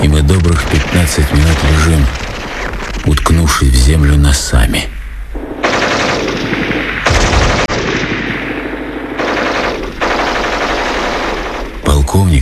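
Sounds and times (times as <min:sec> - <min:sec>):
speech: 0:00.3 - 0:02.2, 0:03.0 - 0:05.0, 0:12.2 - 0:12.4
gunfire: 0:00.4 - 0:03.6, 0:05.4 - 0:11.8.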